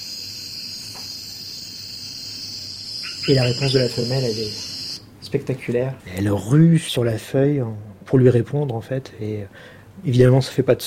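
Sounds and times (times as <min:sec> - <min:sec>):
faint high-pitched insect hiss in New Guinea: 0:00.0 - 0:05.1
speech: 0:03.2 - 0:04.7, 0:05.3 - 0:10.8.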